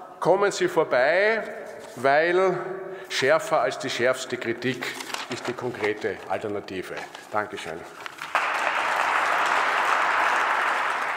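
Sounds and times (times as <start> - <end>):
speech: 0.2 - 8.0
loud audience applause: 8.2 - 11.1.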